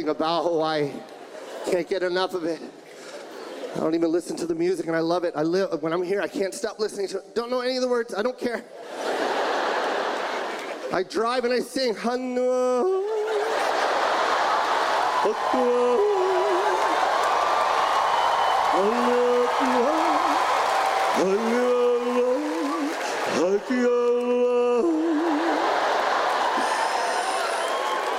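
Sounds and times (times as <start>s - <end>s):
speech: 0.0s - 2.8s, 3.7s - 9.2s, 10.9s - 13.1s, 15.2s - 16.1s, 18.8s - 19.2s, 21.2s - 21.6s
laughter: 1.0s - 4.0s, 8.6s - 11.2s, 12.4s - 28.1s
audience clapping: 13.3s - 28.1s.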